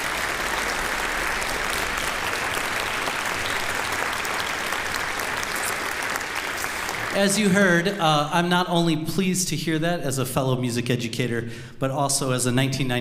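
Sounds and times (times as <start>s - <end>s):
concert audience applauding: 0.0s - 7.8s
speech: 7.2s - 12.9s.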